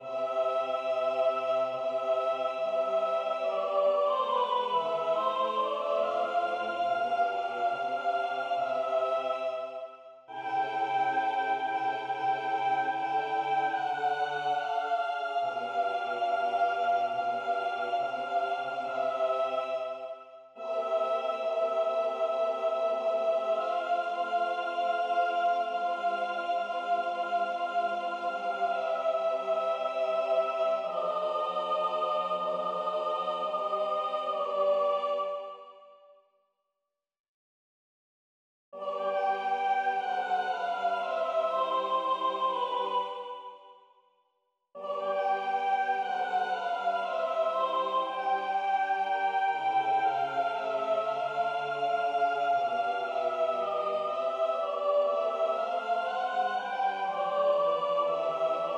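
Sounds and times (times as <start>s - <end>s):
soprano singing a sacred piece: 0.0s - 35.8s, 38.8s - 43.6s, 44.8s - 58.7s.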